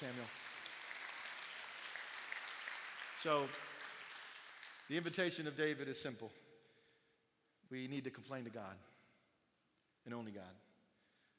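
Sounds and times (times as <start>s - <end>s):
speech: 0.0s - 0.5s, 3.2s - 3.7s, 4.9s - 6.4s, 7.6s - 8.9s, 10.0s - 10.7s
audience applauding: 0.0s - 5.2s.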